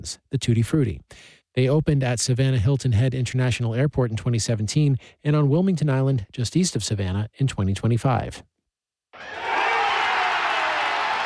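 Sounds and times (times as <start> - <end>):
speech: 0.0 - 8.5
baseball fans roaring at Truist Park after the Braves' final out: 9.2 - 11.2.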